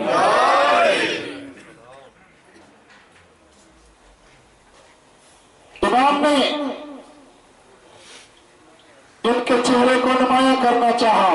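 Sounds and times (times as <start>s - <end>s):
crowd chanting the Naara-e-Haidari slogan during a religious sermon: 0.0s - 1.6s
speech: 9.4s - 11.3s.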